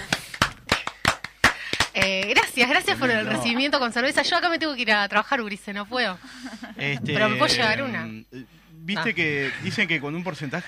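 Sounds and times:
scattered applause: 0.0s - 2.4s
speech: 2.0s - 10.6s.

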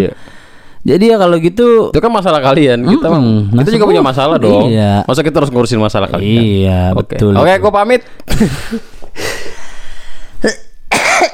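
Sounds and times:
speech: 0.0s - 9.5s
person coughing: 10.4s - 11.3s.

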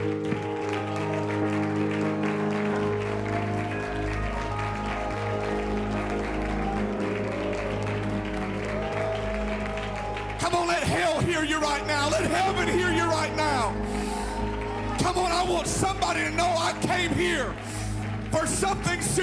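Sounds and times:
large crowd clapping loudly: 0.0s - 19.2s
speech: 15.2s - 17.8s, 18.4s - 19.2s.

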